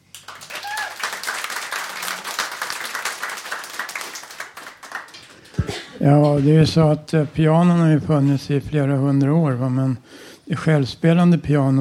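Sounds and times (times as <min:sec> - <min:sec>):
applause: 0:00.0 - 0:05.7
speech: 0:06.0 - 0:11.7.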